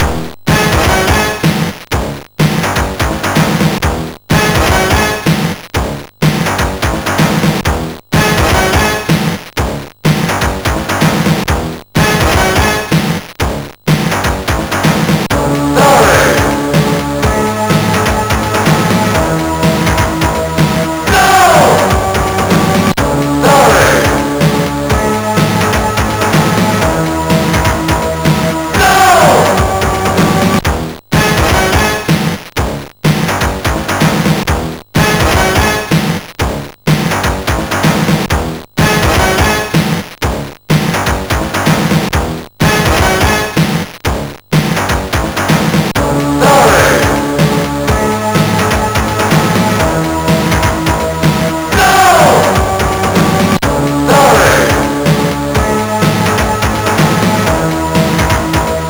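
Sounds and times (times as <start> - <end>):
MOS6581R4 SID chip music: 0.0 - 58.8.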